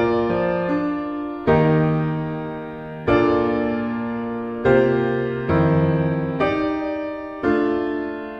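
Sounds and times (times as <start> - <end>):
romantic piano music: 0.0 - 8.3.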